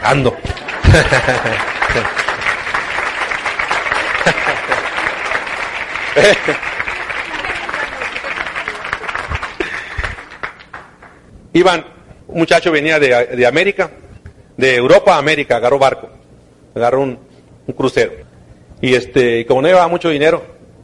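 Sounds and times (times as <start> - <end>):
speech: 0.0 - 2.2, 4.2 - 4.8, 6.2 - 6.7, 11.6 - 14.0, 14.6 - 16.2, 16.8 - 18.2, 18.8 - 20.5
audience applause: 0.0 - 11.2
laughter: 0.1 - 2.7, 3.7 - 10.4.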